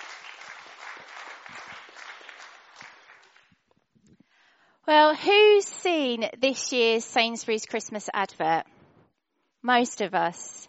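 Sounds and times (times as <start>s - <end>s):
crowd applauding dance performers: 0.0s - 3.6s
speech: 4.9s - 8.7s, 9.6s - 10.6s.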